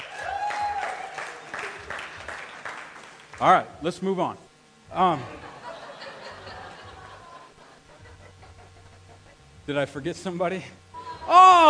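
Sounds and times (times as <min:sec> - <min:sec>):
audience round of applause: 0:00.0 - 0:03.4
speech: 0:03.4 - 0:05.4, 0:09.7 - 0:11.6
laughter: 0:05.1 - 0:09.6, 0:11.0 - 0:11.5.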